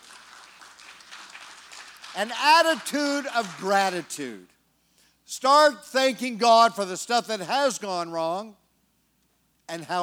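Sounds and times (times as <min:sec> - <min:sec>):
audience clapping in praise: 0:00.0 - 0:04.3
speech: 0:02.2 - 0:04.6, 0:05.3 - 0:08.6, 0:09.7 - 0:10.0.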